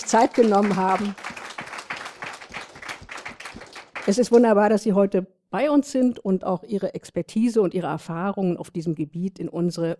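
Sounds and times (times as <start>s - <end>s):
speech: 0.0s - 1.3s, 4.0s - 9.9s
audience applause: 0.0s - 4.4s.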